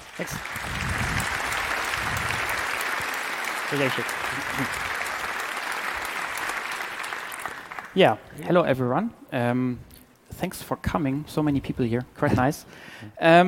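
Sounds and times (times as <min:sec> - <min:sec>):
audience applause: 0:00.0 - 0:08.0
speech: 0:00.2 - 0:00.8, 0:03.7 - 0:04.9, 0:08.0 - 0:13.4.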